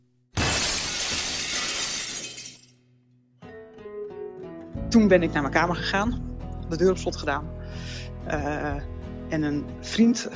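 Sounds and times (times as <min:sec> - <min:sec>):
window glass shattering: 0:00.4 - 0:02.8
speech: 0:04.9 - 0:10.3.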